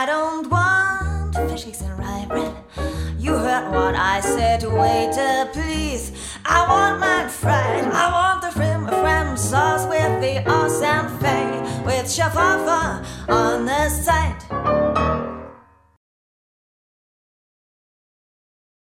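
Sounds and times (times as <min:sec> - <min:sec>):
old style swing trio: 0:00.5 - 0:15.4.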